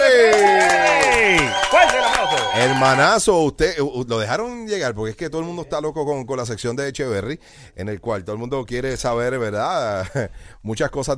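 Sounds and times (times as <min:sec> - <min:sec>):
loud cheering and whooping voices: 0:00.0 - 0:03.1
studio audience applause: 0:00.0 - 0:03.1
laughter: 0:00.3 - 0:03.0
speech: 0:01.7 - 0:11.1.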